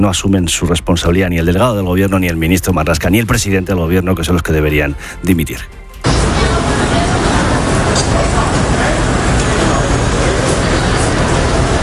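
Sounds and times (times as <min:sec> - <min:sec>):
speech: 0:00.0 - 0:05.8
murmur of many voices in Manhattan, New York: 0:06.0 - 0:11.8
morning city street traffic roar in Manhattan, New York: 0:06.1 - 0:11.8.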